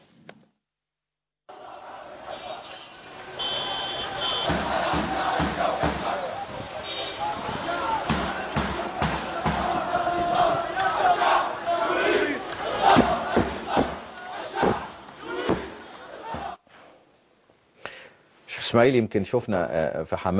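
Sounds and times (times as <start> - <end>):
protest crowd in Hama, Syria chanting in unison: 1.5 - 16.6
speech: 18.8 - 20.3.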